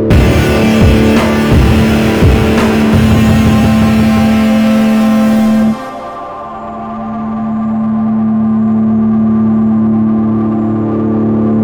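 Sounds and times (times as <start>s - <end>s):
reveal sting: 0.1s - 11.5s.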